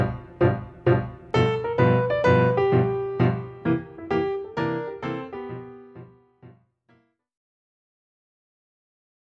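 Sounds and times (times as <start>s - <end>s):
improvised music: 0.0s - 6.6s.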